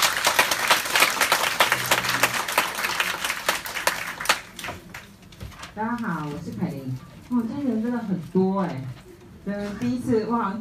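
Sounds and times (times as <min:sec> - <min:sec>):
audience applause: 0:00.0 - 0:05.1
speech: 0:05.8 - 0:10.5.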